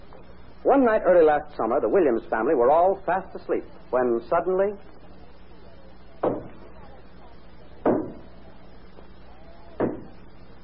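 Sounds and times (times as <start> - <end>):
speech: 0.6 - 5.0
banging on a door at night: 6.2 - 6.6, 7.8 - 8.3, 9.8 - 10.2.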